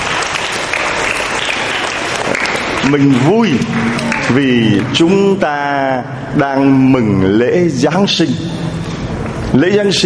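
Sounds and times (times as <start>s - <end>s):
group applause for a child at a Christmas gathering: 0.0s - 5.0s
speech: 2.9s - 8.9s, 9.5s - 10.0s.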